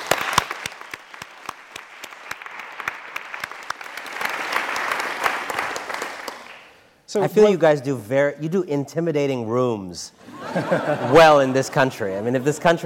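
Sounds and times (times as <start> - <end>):
audience round of applause: 0.0 - 6.7
speech: 7.1 - 12.8
laughter: 10.2 - 12.8.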